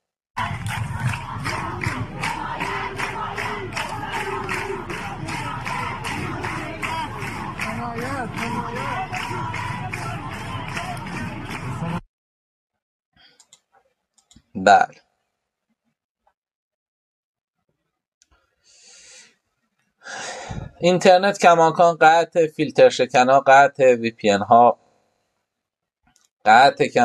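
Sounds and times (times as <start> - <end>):
crowd stomping feet and clapping hands in Viking style: 0.4 - 12.0
voices chanting: 0.4 - 12.0
speech: 14.6 - 15.0, 20.8 - 24.8, 26.4 - 27.0.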